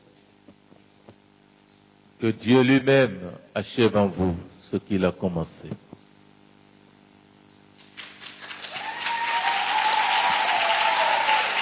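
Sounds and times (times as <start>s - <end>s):
speech: 2.2s - 5.8s
audience applause: 7.8s - 11.6s.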